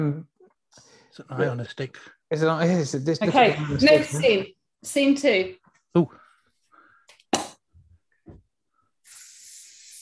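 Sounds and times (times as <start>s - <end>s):
speech: 0.0s - 6.2s
spraying hiss: 9.1s - 9.9s.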